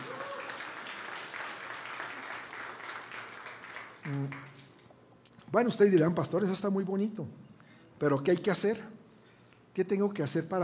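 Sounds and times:
audience applause: 0.0 - 4.7
speech: 4.1 - 4.5, 5.5 - 7.4, 8.0 - 9.0, 9.8 - 10.6.

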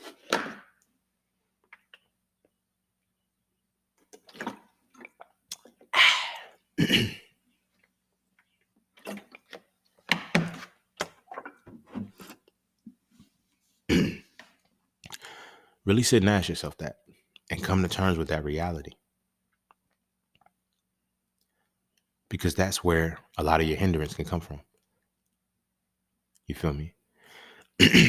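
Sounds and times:
sipping and swallowing water: 4.0 - 7.0, 7.7 - 9.6, 15.0 - 15.4
speech: 6.9 - 7.2, 15.9 - 19.0, 22.3 - 24.7, 26.5 - 27.0, 27.8 - 28.0.

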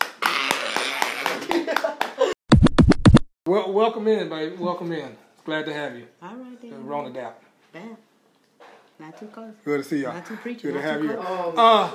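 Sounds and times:
audience clapping: 0.0 - 2.4
speech: 3.5 - 8.1, 9.0 - 11.9.

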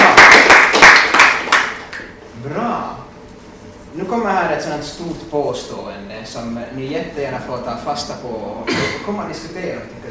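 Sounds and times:
applause: 0.0 - 2.1
speech: 4.1 - 10.0.

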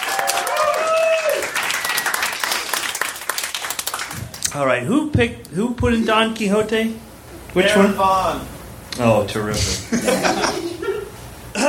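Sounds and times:
audience clapping: 0.0 - 4.6
speech: 4.5 - 10.7
laughter: 9.6 - 11.6.

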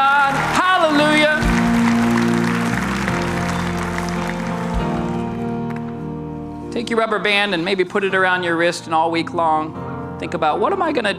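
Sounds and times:
audience hand clapping: 0.0 - 6.1
speech: 6.8 - 11.1.

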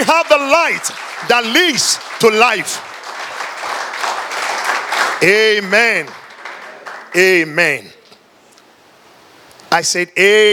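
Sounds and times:
audience clapping hands: 0.0 - 7.6
speech: 0.3 - 2.9, 5.2 - 6.2, 7.1 - 8.0, 9.7 - 10.5.

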